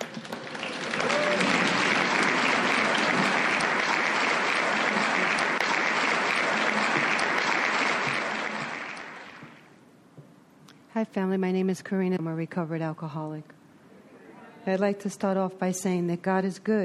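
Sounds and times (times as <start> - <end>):
audience applauding to welcome the evening's speaker: 0.0 - 9.7
speech: 11.1 - 13.6, 14.6 - 16.8.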